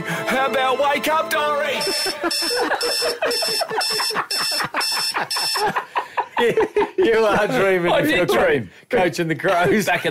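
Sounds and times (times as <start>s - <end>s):
speech: 0.3s - 10.0s
alarm clock ringing: 1.8s - 5.8s
laughter: 1.8s - 8.6s, 9.4s - 10.0s.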